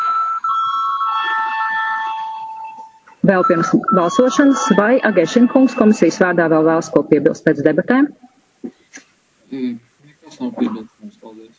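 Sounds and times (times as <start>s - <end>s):
parliament voting call bell: 0.0s - 7.2s
speech: 3.2s - 8.2s.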